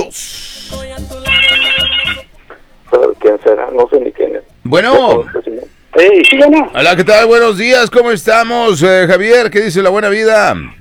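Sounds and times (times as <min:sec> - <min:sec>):
telephone ringing tone on an outgoing call: 0:01.3 - 0:02.4
speech: 0:03.5 - 0:10.7.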